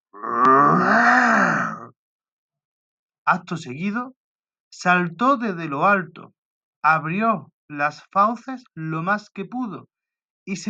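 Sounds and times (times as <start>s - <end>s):
big cat roar: 0.1s - 1.9s
speech: 3.3s - 10.6s.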